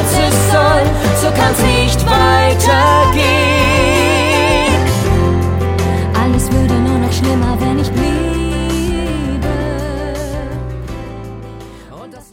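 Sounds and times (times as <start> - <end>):
musical singing: 0.0 - 12.3.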